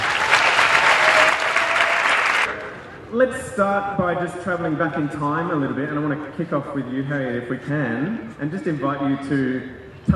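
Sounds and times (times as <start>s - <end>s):
audience applause: 0.0s - 2.6s
speech: 3.1s - 10.1s.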